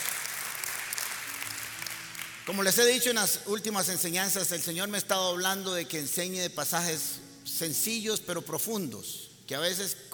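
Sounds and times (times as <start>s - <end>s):
crowd applauding: 0.0s - 3.0s
speech: 2.5s - 10.1s.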